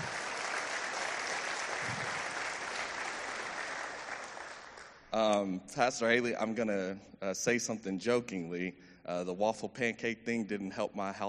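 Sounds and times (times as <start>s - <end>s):
audience applause: 0.0s - 5.0s
speech: 5.2s - 11.2s.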